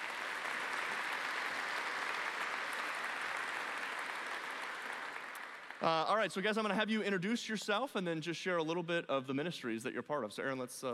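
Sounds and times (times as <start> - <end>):
church audience applauding to welcome visiting global partners: 0.0 - 6.4
speech: 5.8 - 10.9.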